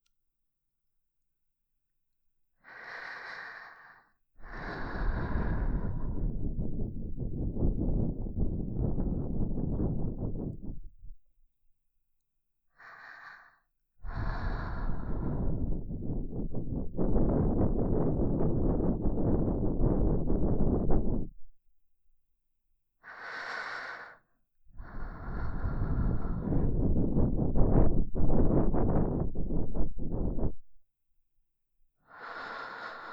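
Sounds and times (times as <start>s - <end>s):
person breathing in the left ear: 2.6s - 11.0s, 12.8s - 21.3s, 23.0s - 30.6s, 32.0s - 33.1s.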